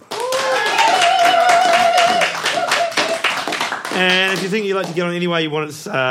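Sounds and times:
whoops and cheering voices: 0.0s - 3.4s
audience applause: 0.0s - 5.1s
speech: 4.0s - 6.0s.

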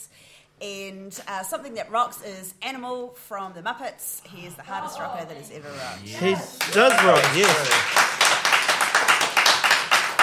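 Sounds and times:
speech: 0.6s - 8.2s
applause: 6.6s - 10.2s.

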